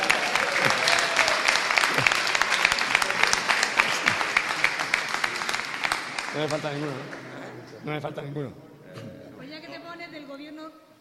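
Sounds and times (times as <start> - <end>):
faint voices and whoops: 0.0 - 2.2
audience applause: 0.0 - 7.4
speech: 6.4 - 7.2, 7.8 - 9.2.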